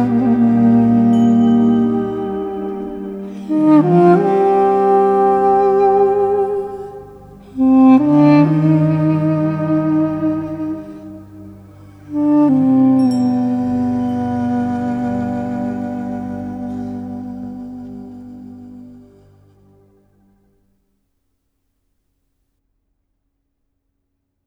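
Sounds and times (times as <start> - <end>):
duduk playing: 0.0 - 20.4.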